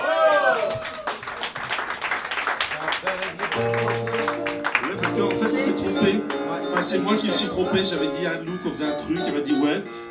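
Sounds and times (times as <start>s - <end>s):
audience applauding: 0.0s - 7.0s
speech: 6.8s - 10.0s.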